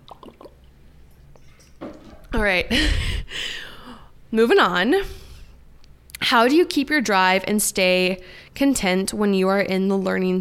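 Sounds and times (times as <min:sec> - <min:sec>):
person gulping water: 0:00.0 - 0:01.6
low steady hum: 0:00.0 - 0:10.3
speech: 0:02.3 - 0:03.6, 0:04.3 - 0:05.2, 0:06.2 - 0:10.3.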